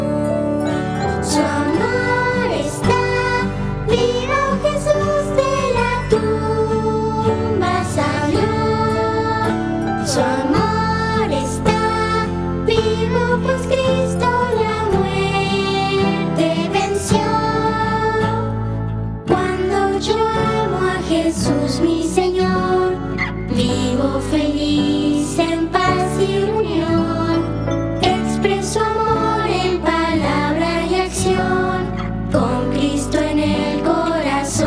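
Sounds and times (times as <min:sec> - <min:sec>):
children singing: 0:00.2 - 0:18.5, 0:19.3 - 0:34.6.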